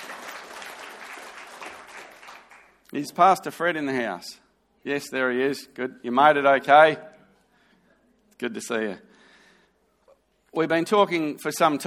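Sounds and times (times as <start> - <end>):
church congregation applauding to welcome visitors: 0.0 - 3.2
speech: 2.9 - 7.1, 8.4 - 9.1, 10.5 - 11.8.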